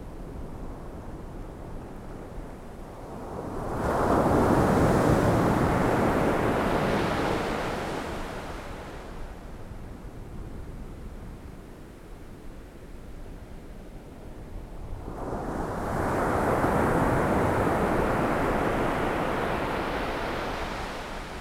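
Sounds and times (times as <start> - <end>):
ocean waves: 3.3 - 9.2, 15.1 - 21.3.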